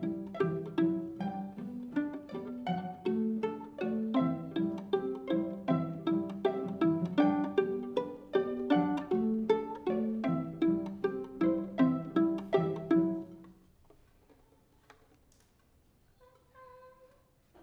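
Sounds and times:
violin: 0.0s - 13.6s.

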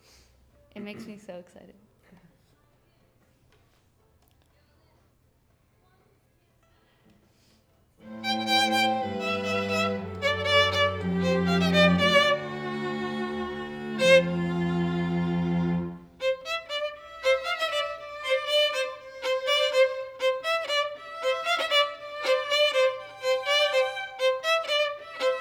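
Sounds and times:
violin: 8.0s - 25.4s.

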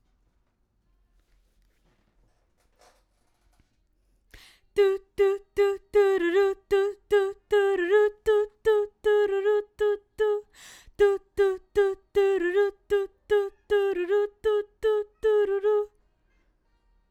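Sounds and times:
background vocals: 4.4s - 16.0s.

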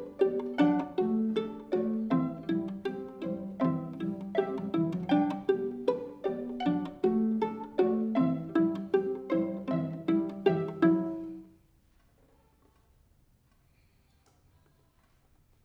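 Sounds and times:
violin: 0.0s - 11.6s.

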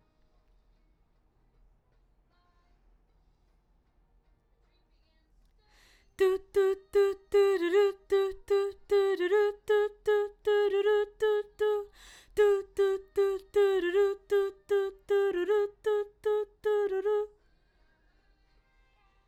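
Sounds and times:
background vocals: 6.0s - 17.6s.

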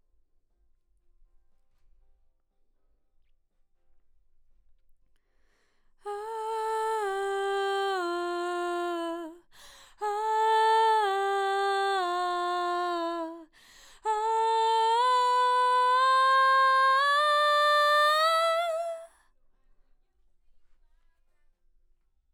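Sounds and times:
background vocals: 6.1s - 19.1s.

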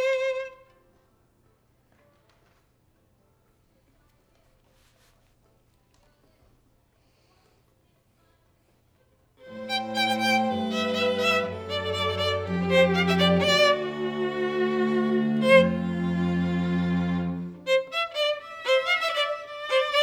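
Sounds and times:
violin: 0.0s - 0.8s, 9.4s - 20.0s.

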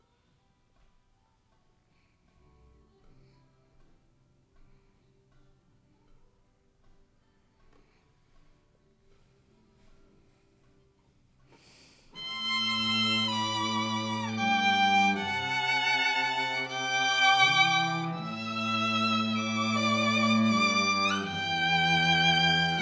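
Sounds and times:
violin: 12.2s - 22.8s.

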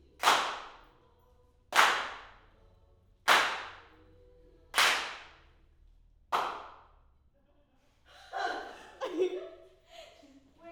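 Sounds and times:
hand claps in left channel: 0.0s - 0.9s, 1.7s - 2.4s, 3.3s - 4.0s, 4.8s - 5.5s, 6.3s - 6.9s
laughter: 8.2s - 10.4s.

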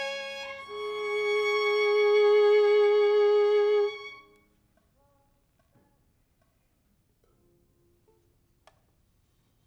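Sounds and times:
violin: 0.0s - 4.5s.

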